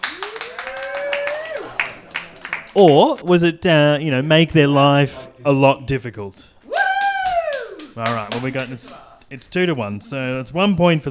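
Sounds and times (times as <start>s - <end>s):
audience clapping and cheering: 0.0s - 3.3s, 6.6s - 9.1s
speech: 2.8s - 6.6s, 8.0s - 11.0s.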